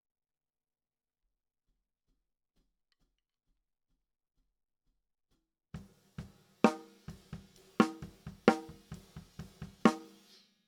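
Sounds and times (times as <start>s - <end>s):
snare drum top hit: 5.8s - 10.2s.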